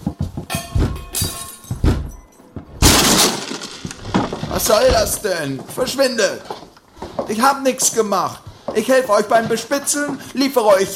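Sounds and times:
door being broken open: 0.8 - 5.4
speech: 4.6 - 6.6, 7.3 - 10.9.

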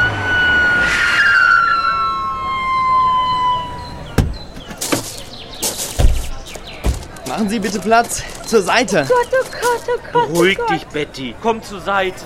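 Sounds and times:
ambulance siren wailing: 0.0 - 4.2
sharp knocks: 4.2 - 7.4
laughter: 7.4 - 11.2
speech: 7.4 - 12.2.

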